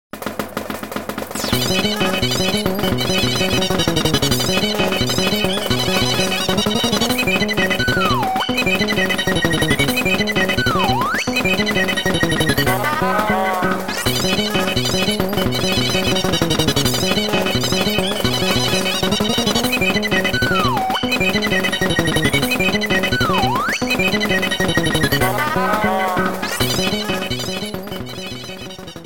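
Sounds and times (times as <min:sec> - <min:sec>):
fight music: 0:00.2 - 0:29.0.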